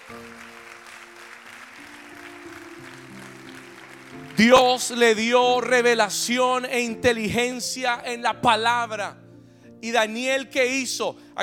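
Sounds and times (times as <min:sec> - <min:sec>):
audience applause: 0:00.0 - 0:05.4
speech: 0:04.4 - 0:09.2, 0:09.8 - 0:11.4.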